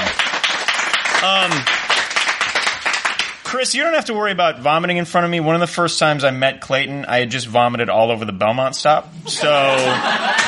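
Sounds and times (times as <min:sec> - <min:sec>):
audience clapping after a story at a live show: 0:00.0 - 0:03.7, 0:09.8 - 0:10.4
speech: 0:01.2 - 0:01.8, 0:03.5 - 0:10.4
laughter: 0:09.2 - 0:10.4.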